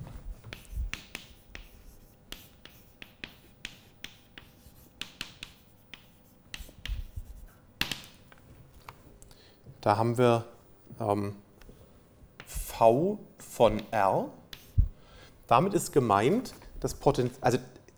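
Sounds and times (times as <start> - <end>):
writing spherical coordinates on a board: 0.0 - 9.1, 11.6 - 12.8, 13.5 - 15.1
speech: 9.8 - 11.4, 12.8 - 14.4, 15.5 - 17.8.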